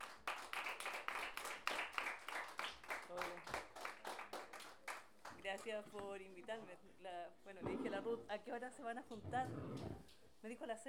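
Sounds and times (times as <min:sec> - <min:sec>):
audience applause at a gathering of women payadoras: 0:00.0 - 0:05.0
speech: 0:05.5 - 0:10.8.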